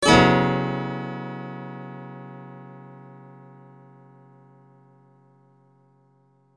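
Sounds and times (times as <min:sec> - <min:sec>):
guitar: 0:00.0 - 0:03.3.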